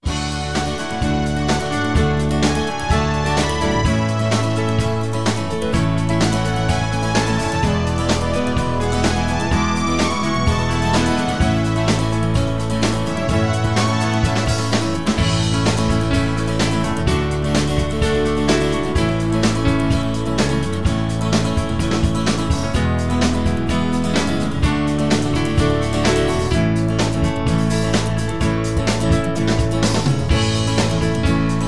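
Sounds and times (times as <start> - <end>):
instrumental music: 0.0 - 31.6.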